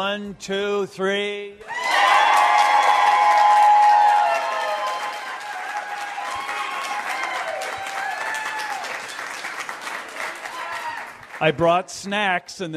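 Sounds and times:
speech: 0.0 - 2.0, 11.4 - 12.7
live audience at Pinstripes cheering, clapping and shouting: 1.6 - 11.6.

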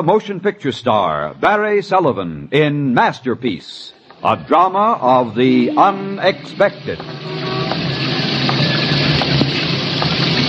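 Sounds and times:
speech: 0.0 - 7.4
steady dense rain pouring: 5.9 - 10.4
water gushing from gutters: 7.6 - 10.4.

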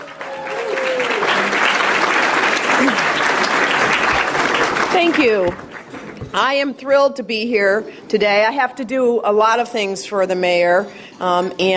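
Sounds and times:
audience applause welcoming a speaker at the City Club of Chicago: 0.0 - 6.2
speech: 5.0 - 5.7, 6.3 - 11.7.

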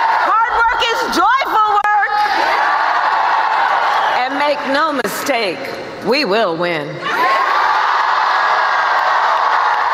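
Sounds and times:
rally crowd cheering: 0.0 - 4.3, 7.0 - 9.9
speech: 4.7 - 7.2.

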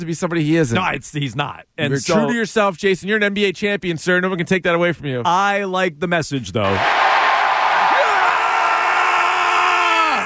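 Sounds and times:
speech: 0.0 - 7.1
arena crowd cheering and whooping: 6.7 - 10.2.

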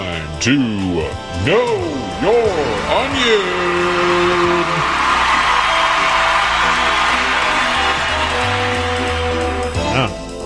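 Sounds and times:
steady musical backing: 0.0 - 10.4
speech: 0.4 - 5.0
enthusiastic crowd cheering and whooping: 2.5 - 9.8.

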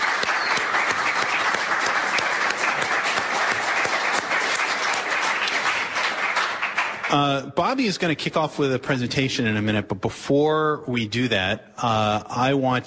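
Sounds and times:
crowd clapping: 0.0 - 8.1
speech: 7.1 - 12.8.

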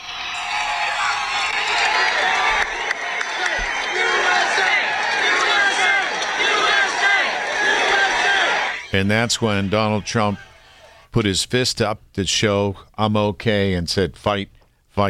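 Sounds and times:
large crowd shouting after a shooting: 0.0 - 11.0
speech: 8.9 - 10.5, 11.1 - 15.0.

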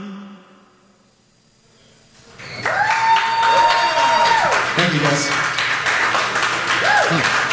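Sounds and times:
live studio applause: 2.6 - 7.5.

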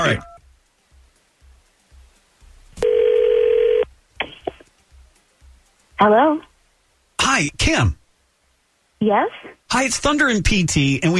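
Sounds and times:
speech: 0.0 - 0.3, 6.0 - 6.5, 7.3 - 8.0, 9.0 - 11.1
telephone call ring tone: 2.8 - 3.9.

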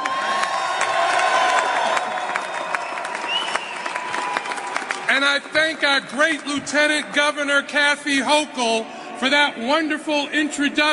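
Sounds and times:
crowd whooping and shouting at a speaker's arrival: 0.0 - 5.0
crowd applauding a speaker's arrival: 0.0 - 7.2
speech: 5.2 - 10.9.

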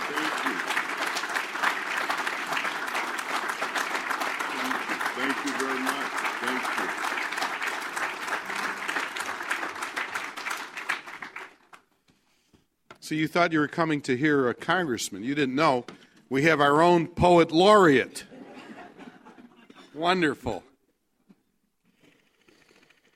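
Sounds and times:
audience applause: 0.0 - 11.8
speech: 13.1 - 18.3, 20.0 - 20.7.

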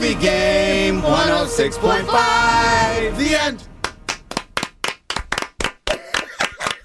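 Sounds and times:
speech: 0.1 - 3.7
clapping: 3.8 - 6.7.

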